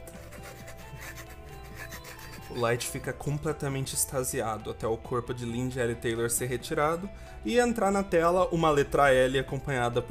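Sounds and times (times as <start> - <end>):
pen scratching across paper while writing: 0.0 - 3.0
speech: 2.5 - 10.0.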